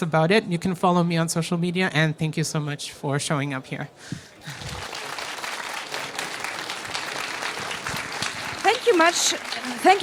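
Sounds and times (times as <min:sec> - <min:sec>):
speech: 0:00.0 - 0:04.7, 0:08.9 - 0:10.0
audience applause after a talk: 0:04.4 - 0:10.0.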